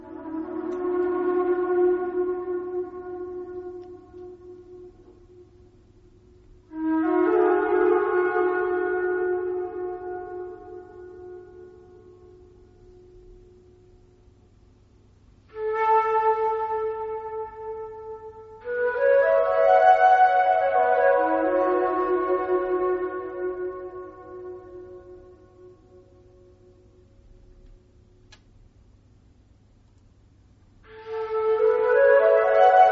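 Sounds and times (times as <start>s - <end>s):
flute playing in Egyptian style: 0.0s - 5.5s, 6.7s - 13.4s, 15.5s - 26.5s, 30.9s - 32.9s.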